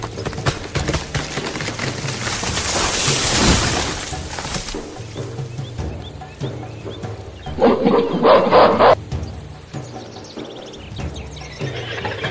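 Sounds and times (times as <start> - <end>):
jungle animal sounds: 1.5 - 9.0, 10.1 - 12.2.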